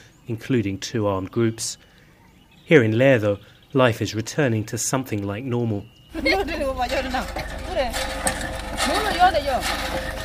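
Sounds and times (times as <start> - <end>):
speech: 0.3 - 1.9, 2.7 - 10.2
women chatting while pumping water: 6.1 - 10.2
rhythmic mechanical churning of water pump: 6.2 - 10.2.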